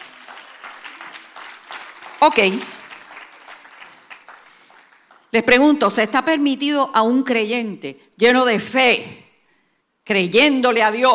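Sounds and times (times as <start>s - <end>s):
audience applause: 0.0s - 5.3s
speech: 2.2s - 2.8s, 5.3s - 9.2s, 10.1s - 11.1s.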